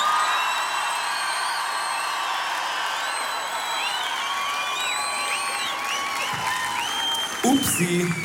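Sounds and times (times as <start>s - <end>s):
crowd cheering and applauding: 0.0s - 8.2s
speech: 7.4s - 8.2s.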